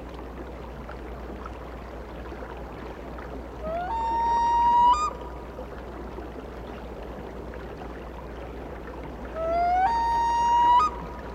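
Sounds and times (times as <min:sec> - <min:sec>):
loon tremolo calls: 0:03.7 - 0:05.3, 0:09.3 - 0:11.1
loon wails: 0:09.4 - 0:10.9.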